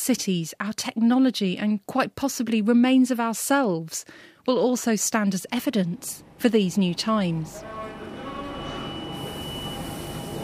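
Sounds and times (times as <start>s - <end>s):
speech: 0.0s - 7.8s
London underground tube train: 7.0s - 10.4s.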